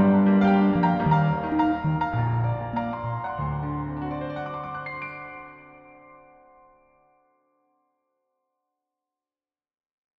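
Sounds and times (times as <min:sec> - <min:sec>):
piano cover: 0:00.0 - 0:07.0.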